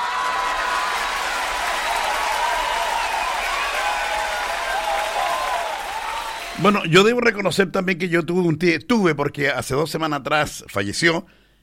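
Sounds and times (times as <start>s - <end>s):
applause: 0.0s - 6.9s
speech: 6.6s - 11.4s.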